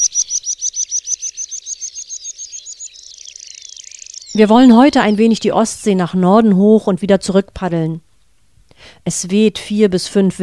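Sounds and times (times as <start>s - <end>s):
meadow pipit trilling song: 0.0s - 5.8s
speech: 4.4s - 8.1s, 9.0s - 10.4s.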